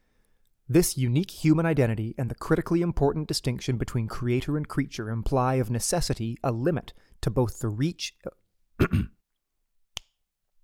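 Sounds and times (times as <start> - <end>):
speech: 0.7 - 9.2
finger snap marking an edit point: 10.0 - 10.2.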